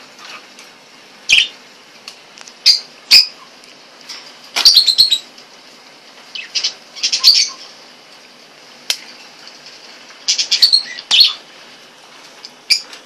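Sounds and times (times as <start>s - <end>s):
eclectus parrot chirping: 1.3s - 1.6s, 2.6s - 3.6s, 4.6s - 5.3s, 6.3s - 7.8s, 10.2s - 11.5s, 12.7s - 13.0s.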